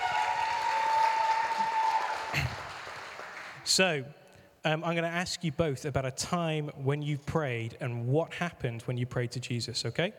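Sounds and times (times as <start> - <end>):
audience round of applause: 0.0 - 3.7
speech: 3.7 - 10.1.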